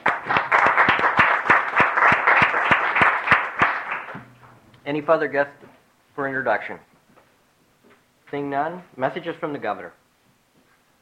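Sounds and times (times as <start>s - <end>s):
applause welcoming a guest in a legislative chamber: 0.0s - 4.6s
speech: 4.9s - 5.6s, 6.2s - 6.9s, 8.3s - 10.0s.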